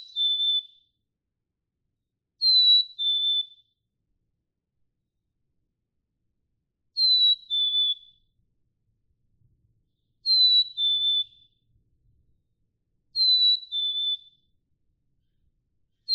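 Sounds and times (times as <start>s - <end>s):
black-capped chickadee song: 0.0s - 0.9s, 2.4s - 3.7s, 7.0s - 8.3s, 10.2s - 11.6s, 13.2s - 14.5s.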